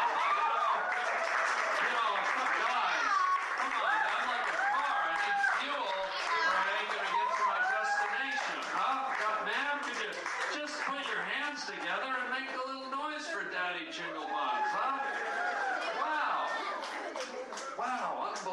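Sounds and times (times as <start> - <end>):
comedy club audience cheering and whoops: 0.0 - 1.9, 2.7 - 8.6, 14.1 - 16.7
comedy club audience applause: 0.0 - 12.8, 14.1 - 18.5
crowd chatter: 0.0 - 18.5.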